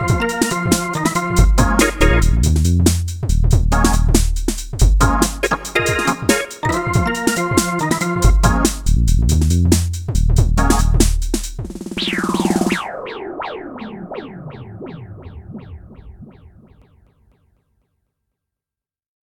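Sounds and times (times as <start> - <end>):
Novation KS5 synthesizer: 0.0 - 2.7, 3.6 - 9.4, 10.4 - 11.2, 11.9 - 17.0.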